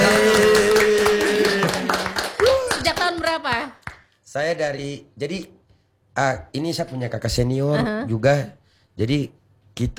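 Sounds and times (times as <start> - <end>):
hand clapping at an Indonesian talk show: 0.0 - 4.2
speech: 4.4 - 5.6, 6.2 - 9.9.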